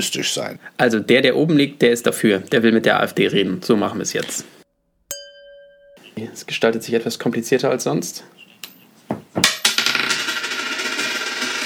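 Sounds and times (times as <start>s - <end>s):
speech: 0.0s - 4.6s, 6.2s - 8.4s
tossed coin falling and landing: 9.4s - 11.6s.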